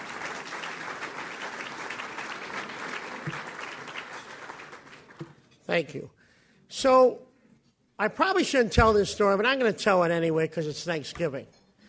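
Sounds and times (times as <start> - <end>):
applause welcoming a guest at the City Club of Chicago: 0.0 - 5.2
speech: 5.7 - 7.3, 8.0 - 11.6.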